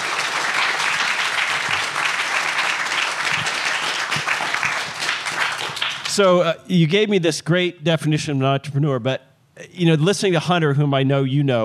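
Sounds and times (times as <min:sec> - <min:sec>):
audience applause: 0:00.0 - 0:06.3
speech: 0:06.2 - 0:11.6.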